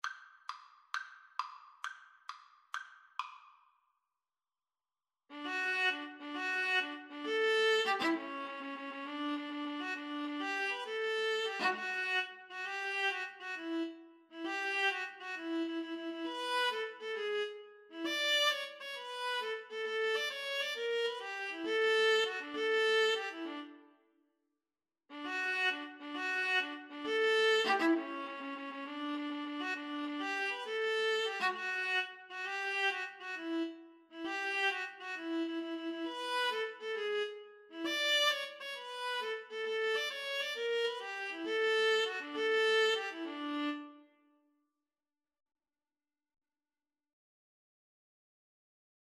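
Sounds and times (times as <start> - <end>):
viola: 5.3 - 23.9, 25.1 - 44.1.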